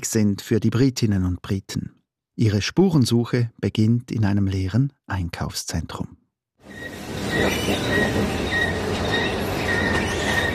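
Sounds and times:
speech: 0.0s - 8.6s
squeaking escalator: 6.6s - 10.5s.

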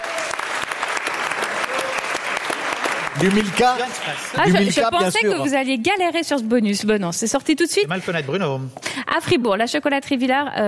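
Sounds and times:
audience applauding: 0.0s - 5.3s
speech: 3.2s - 10.6s.

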